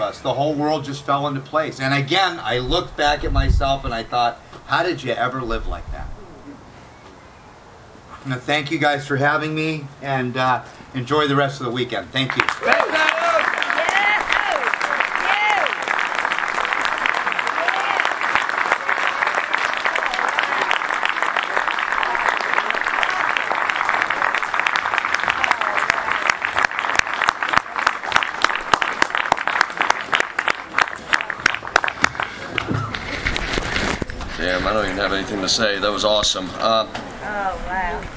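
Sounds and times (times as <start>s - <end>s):
speech: 0.1s - 6.2s, 8.2s - 12.9s, 35.5s - 37.0s
audience applause: 12.3s - 35.8s.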